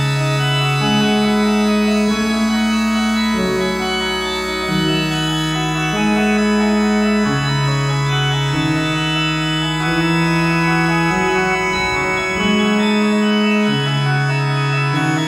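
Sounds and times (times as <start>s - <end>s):
stereo music on Farfisa Compact Duo Deluxe: 0.0s - 15.2s.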